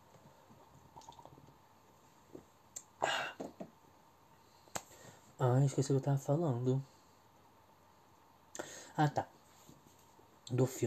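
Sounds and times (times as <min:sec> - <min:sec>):
person sipping beer: 0:00.6 - 0:01.5
speech: 0:05.4 - 0:07.0, 0:09.0 - 0:09.3, 0:10.5 - 0:10.8.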